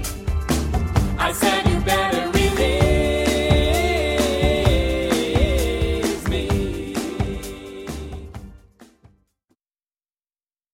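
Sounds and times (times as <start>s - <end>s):
SATB choir singing: 1.2s - 8.4s.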